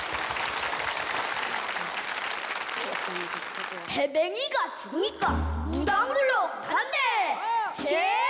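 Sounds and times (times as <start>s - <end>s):
audience applause: 0.0s - 4.0s
speech: 3.1s - 8.2s.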